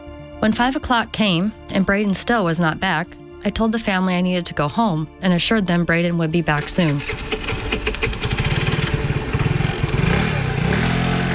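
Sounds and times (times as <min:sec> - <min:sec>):
speech: 0:00.4 - 0:07.7
motorcycle engine revving: 0:06.6 - 0:11.3.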